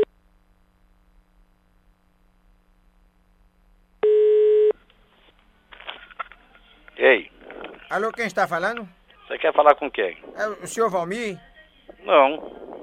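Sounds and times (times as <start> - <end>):
telephone tone as a call is placed: 4.0 - 4.8
speech: 7.0 - 12.6.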